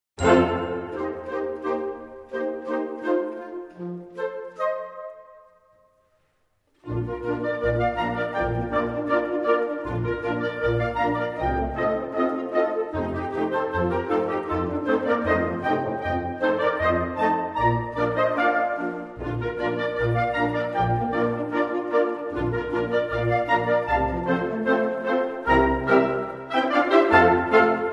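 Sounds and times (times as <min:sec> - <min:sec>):
pizzicato polka: 0:00.2 - 0:05.4, 0:06.8 - 0:27.9.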